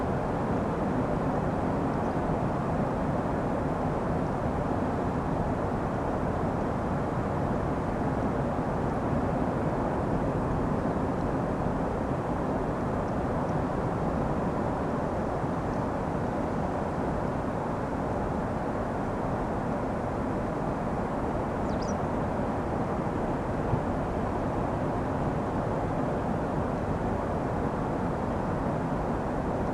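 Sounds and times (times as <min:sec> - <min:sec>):
sea: 0:00.0 - 0:29.7
bird: 0:21.6 - 0:22.0.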